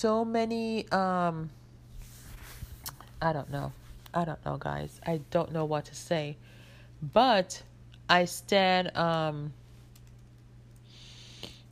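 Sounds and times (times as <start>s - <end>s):
speech: 0.0s - 1.6s, 3.2s - 9.6s
typing on a computer keyboard: 9.9s - 10.9s.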